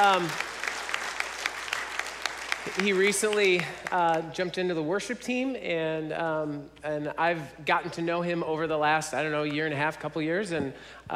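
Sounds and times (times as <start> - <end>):
speech: 0.0 - 0.5, 2.6 - 11.1
audience applause: 0.0 - 3.9.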